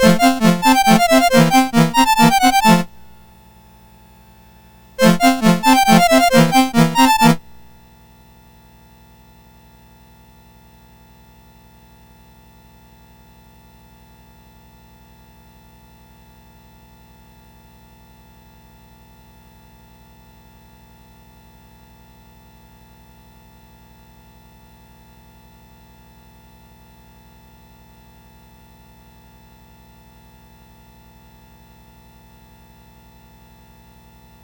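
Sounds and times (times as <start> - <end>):
polonaise on MOS6581R4 SID chip: 0.0 - 3.2, 5.0 - 7.8.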